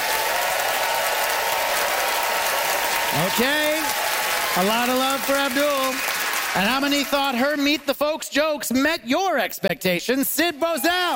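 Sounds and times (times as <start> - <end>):
audience applause: 0.0 - 8.0, 10.6 - 11.1
speech: 3.2 - 11.1.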